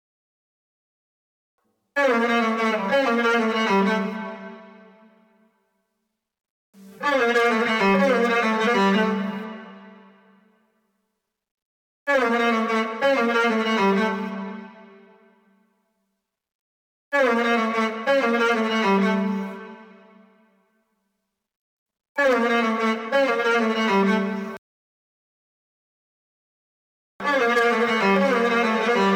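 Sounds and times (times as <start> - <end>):
solo violin: 2.0 - 5.0, 6.8 - 10.2, 12.1 - 14.9, 17.2 - 20.1, 22.2 - 24.6, 27.2 - 29.1.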